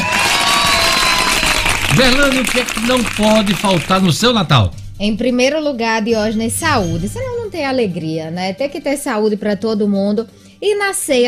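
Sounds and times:
applause: 0.0 - 4.4
speech: 2.0 - 11.2.

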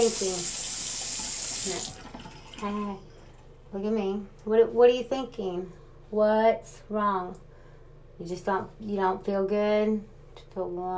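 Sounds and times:
speech: 0.0 - 0.7, 1.6 - 3.1, 3.7 - 7.4, 8.2 - 10.9
running tap water at a sink while washing hands: 0.0 - 3.5.

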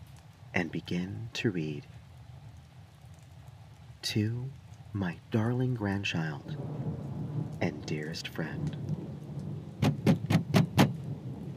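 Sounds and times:
speech: 0.6 - 2.0, 4.0 - 6.8, 7.6 - 9.0
heavy bangs on a door: 9.8 - 11.0.

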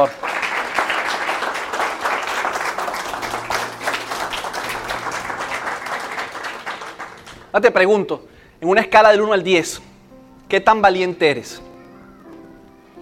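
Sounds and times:
speech: 0.0 - 0.3, 7.6 - 9.9, 10.5 - 11.7
louder audience applause: 0.0 - 7.5.

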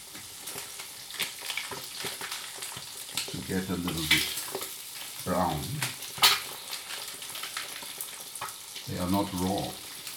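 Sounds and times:
Nuremberg bratwurst sausages sizzling in a pan: 0.0 - 10.1
speech: 3.5 - 4.4, 5.2 - 5.9, 9.0 - 9.8.

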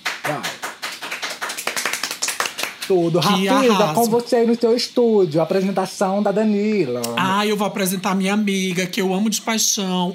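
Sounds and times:
soft hand clapping: 0.0 - 2.9
speech: 2.9 - 10.1.

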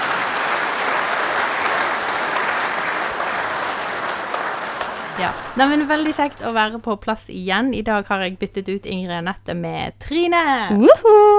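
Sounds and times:
laughter: 0.0 - 6.8
studio audience applause: 0.0 - 6.9
speech: 5.2 - 11.3.

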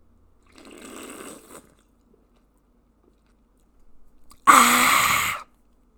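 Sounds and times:
person slurping orange mango flavored sparkling water in mouth: 0.6 - 1.8, 4.5 - 5.4
wet mouth clicks: 4.3 - 5.4.

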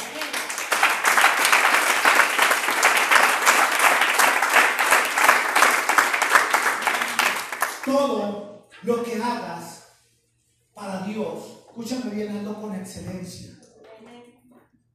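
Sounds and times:
audience applause: 0.0 - 7.9
speech: 8.8 - 9.8, 11.2 - 13.6.

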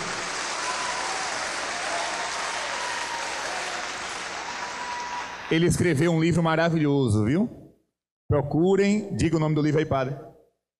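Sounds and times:
crowd applause: 0.0 - 5.8
speech: 5.5 - 7.6, 8.3 - 10.3.

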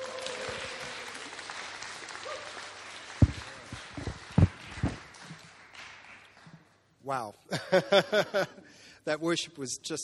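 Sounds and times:
audience at a church gathering in Teesside applauding: 0.0 - 6.5
speech: 7.1 - 10.0
laughter: 7.5 - 8.7.

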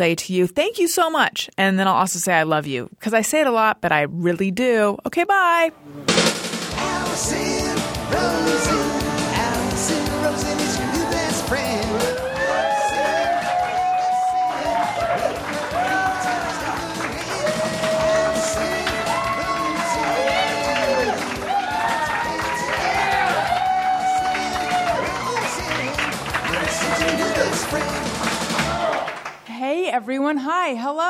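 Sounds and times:
speech: 0.0 - 9.0, 9.8 - 12.3, 29.6 - 31.0
live audience cheering and whooping: 8.0 - 29.3
scattered clapping: 13.0 - 29.5.

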